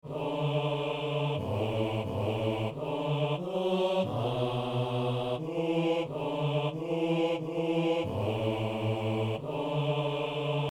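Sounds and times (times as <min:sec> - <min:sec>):
bass voice singing a hymn: 0:00.1 - 0:10.6.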